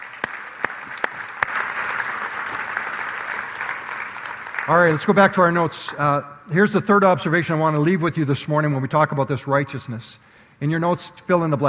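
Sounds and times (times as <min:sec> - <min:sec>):
church congregation applauding: 0:00.0 - 0:06.2
speech: 0:04.7 - 0:11.6.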